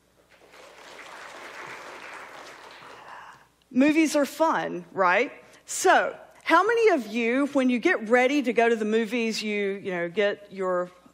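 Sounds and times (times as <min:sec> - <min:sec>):
audience clapping: 0:00.3 - 0:03.5
speech: 0:03.7 - 0:11.0.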